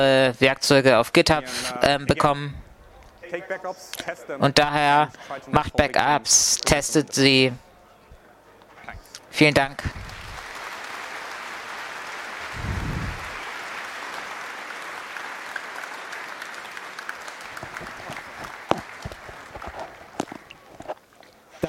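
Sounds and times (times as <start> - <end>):
speech: 0.0 - 2.6, 3.3 - 7.7, 9.3 - 10.2
audience applause in a hall: 9.8 - 20.6.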